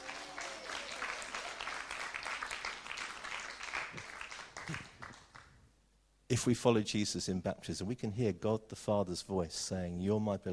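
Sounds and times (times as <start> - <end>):
round of applause: 0.0 - 5.6
speech: 6.3 - 10.5.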